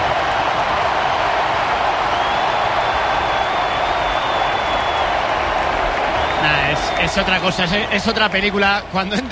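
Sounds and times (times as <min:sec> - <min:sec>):
stadium crowd ovation for the number 10: 0:00.0 - 0:09.3
speech: 0:07.1 - 0:09.3.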